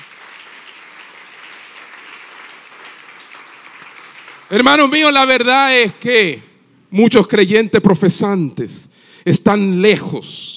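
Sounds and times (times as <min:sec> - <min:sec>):
crowd applauding: 0:00.0 - 0:05.0
speech: 0:04.5 - 0:10.5.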